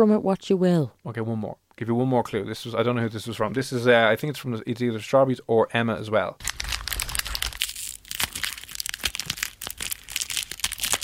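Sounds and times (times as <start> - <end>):
speech: 0.0 - 6.6
sweet wrapper being unwrapped: 6.4 - 11.0.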